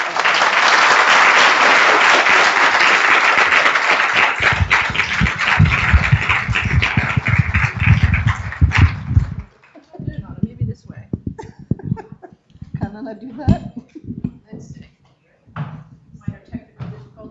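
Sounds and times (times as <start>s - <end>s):
audience applause: 0.0s - 9.8s
laughter: 11.3s - 12.8s, 13.4s - 14.4s.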